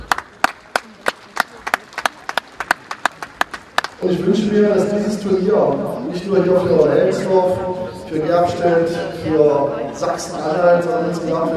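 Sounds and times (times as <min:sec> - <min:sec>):
audience applause: 0:00.0 - 0:04.0
speech: 0:04.0 - 0:11.5.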